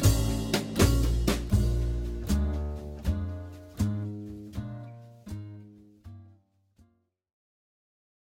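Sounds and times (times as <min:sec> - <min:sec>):
chord progression in B-flat: 0:00.0 - 0:06.2.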